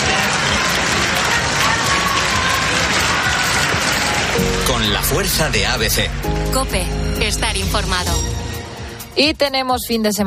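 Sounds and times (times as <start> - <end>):
neighbours applauding: 0.0 - 6.2
speech: 4.7 - 8.3, 9.2 - 10.2.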